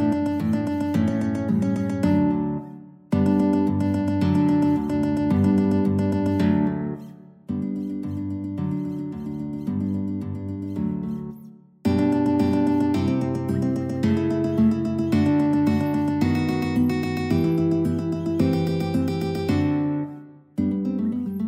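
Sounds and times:
guitar duet: 0:00.0 - 0:21.4.

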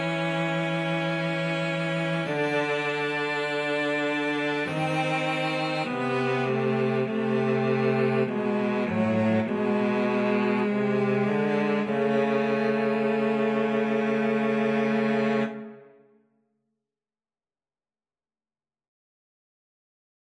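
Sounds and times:
cello trio: 0:00.0 - 0:15.9.

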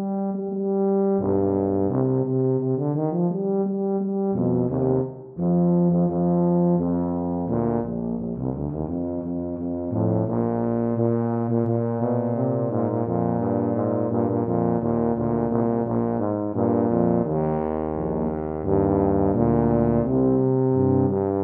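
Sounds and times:
tuba duet: 0:00.0 - 0:21.4.

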